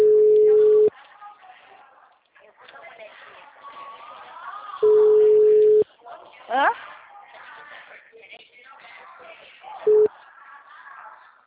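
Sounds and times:
ringback tone of an outgoing phone call: 0:00.0 - 0:00.9, 0:04.8 - 0:05.8
people talking: 0:00.0 - 0:11.4.

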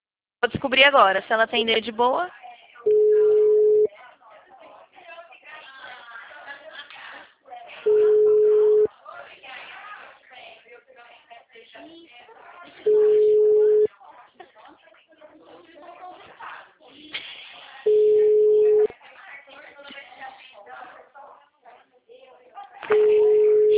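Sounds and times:
speech: 0:00.4 - 0:02.4
ringback tone of an outgoing phone call ringing unanswered: 0:02.8 - 0:03.9, 0:07.9 - 0:08.9, 0:12.9 - 0:13.9, 0:17.9 - 0:18.9, 0:22.9 - 0:23.7.

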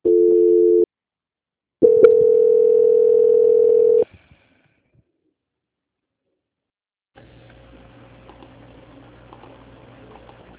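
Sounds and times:
telephone call transfer tones: 0:01.8 - 0:04.0.

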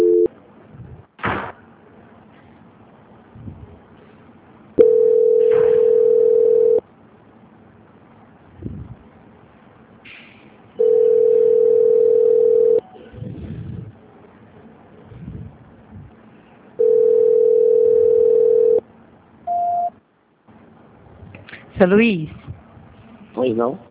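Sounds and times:
telephone line ringing during a call transfer: 0:00.0 - 0:00.3, 0:04.8 - 0:06.8, 0:10.8 - 0:12.8, 0:16.8 - 0:18.8
speech: 0:21.8 - 0:22.4, 0:23.4 - 0:23.8.

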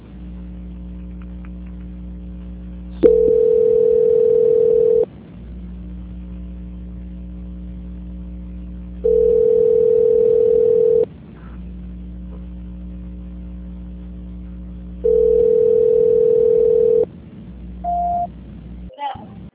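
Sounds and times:
constant low hum on the telephone line: 0:00.0 - 0:19.5
telephone line beeps during a call transfer: 0:03.0 - 0:05.0, 0:09.1 - 0:11.0, 0:15.1 - 0:17.0, 0:17.9 - 0:18.3.

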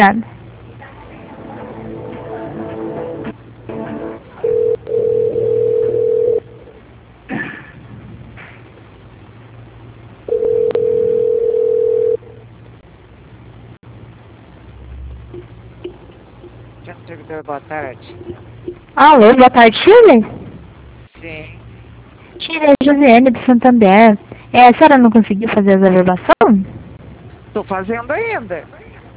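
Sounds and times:
speech: 0:00.0 - 0:00.3, 0:17.6 - 0:20.4, 0:22.5 - 0:26.7, 0:27.6 - 0:28.8
telephone line tone during office call transfer: 0:04.4 - 0:06.7, 0:10.3 - 0:12.4.

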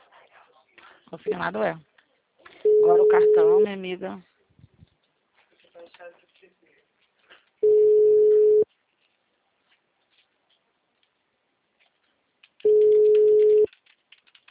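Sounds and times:
speech: 0:01.1 - 0:01.9, 0:02.8 - 0:04.3
telephone busy tone after a dropped call: 0:02.6 - 0:03.7, 0:07.6 - 0:08.6, 0:12.7 - 0:13.7.

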